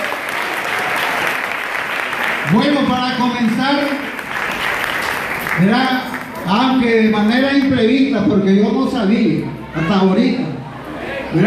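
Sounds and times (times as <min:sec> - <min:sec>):
audience clapping hands: 0:00.0 - 0:07.7
speech: 0:02.5 - 0:04.2, 0:05.6 - 0:10.5.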